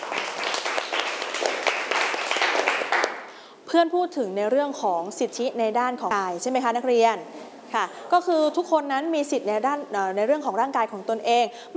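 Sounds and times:
classroom group clapping: 0.0 - 3.3
speech: 3.7 - 11.7.

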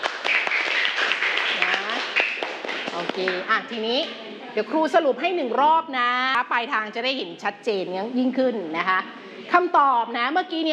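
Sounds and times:
classroom applause: 0.0 - 3.5
speech: 3.0 - 10.7.

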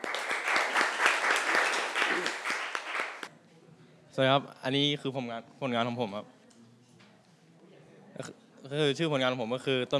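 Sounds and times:
applause for the group: 0.0 - 3.3
speech: 4.2 - 6.4, 8.2 - 9.9.

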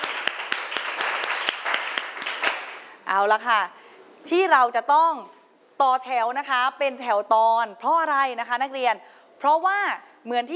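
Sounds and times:
classroom clapping: 0.0 - 2.9
speech: 3.1 - 10.5.

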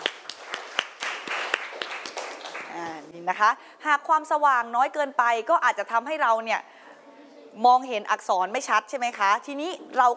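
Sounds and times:
loud clapping: 0.0 - 3.0
speech: 3.2 - 6.7, 7.6 - 10.1.

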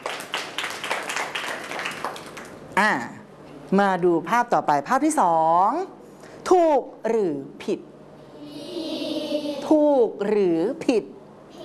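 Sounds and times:
clapping: 0.0 - 2.6
speech: 2.8 - 7.9, 9.7 - 11.2.

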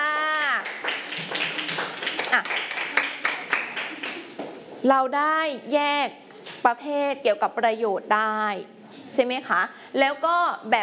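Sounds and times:
students clapping: 0.5 - 4.4
speech: 4.8 - 10.8.

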